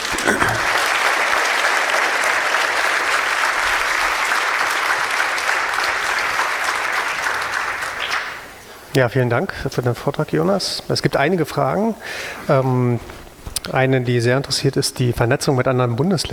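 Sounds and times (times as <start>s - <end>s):
audience applause after talk: 0.0s - 8.6s
speech: 0.2s - 0.7s, 9.0s - 16.3s.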